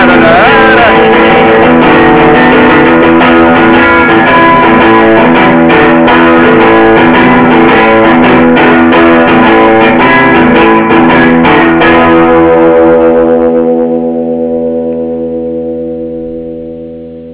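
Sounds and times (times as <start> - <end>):
guitar: 0.0 - 17.2.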